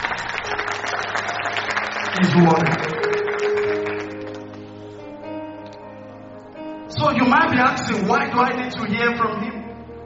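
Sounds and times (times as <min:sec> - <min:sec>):
audience clapping: 0:00.0 - 0:04.9
speech: 0:02.2 - 0:03.0, 0:07.2 - 0:09.6.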